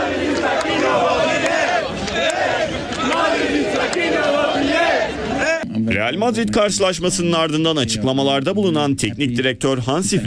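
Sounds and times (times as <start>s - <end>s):
Barcelona fans chanting and shouting in the streets celebrating the championship: 0.0s - 5.6s
speech: 6.1s - 10.2s.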